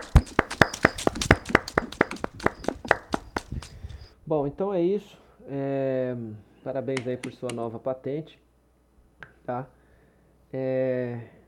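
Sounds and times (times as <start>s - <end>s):
round of applause: 0.0s - 3.9s
speech: 4.3s - 8.4s, 9.5s - 9.8s, 10.5s - 11.4s.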